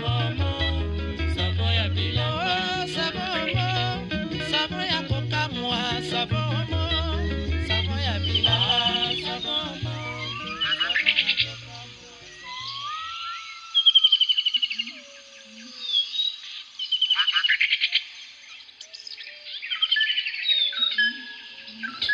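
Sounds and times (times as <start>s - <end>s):
Congolese rumba with bass line and guitar: 0.0s - 13.0s
tropical birds chirping, whistling and trilling: 0.0s - 22.1s.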